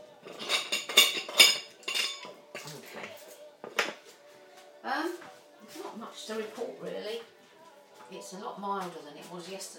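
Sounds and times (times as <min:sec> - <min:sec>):
dishes and cutlery clinking into a dishwasher rack: 0:00.2 - 0:04.0
speech: 0:06.3 - 0:07.3, 0:08.1 - 0:09.7.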